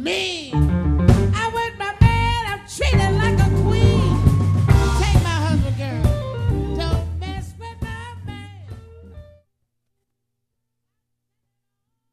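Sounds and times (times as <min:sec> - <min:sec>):
blues singer singing: 0:01.3 - 0:08.8.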